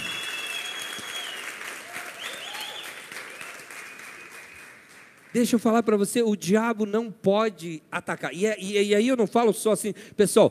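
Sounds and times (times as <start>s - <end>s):
large crowd applauding loudly: 0.0s - 5.5s
speech: 5.4s - 10.5s.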